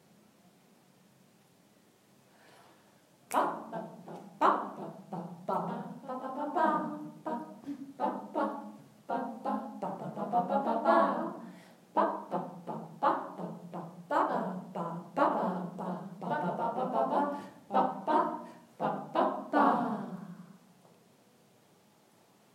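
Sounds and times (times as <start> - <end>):
chant in triple meter: 3.3 - 20.6.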